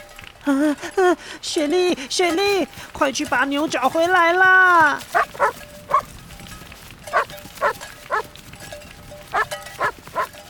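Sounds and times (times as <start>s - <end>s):
speech: 0.4s - 5.6s
sheepdog barking: 5.1s - 6.1s, 7.1s - 8.3s, 9.3s - 10.4s.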